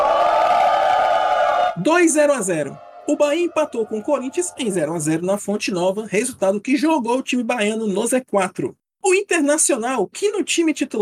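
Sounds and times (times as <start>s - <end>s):
crowd booing: 0.0s - 5.2s
speech: 1.8s - 10.9s.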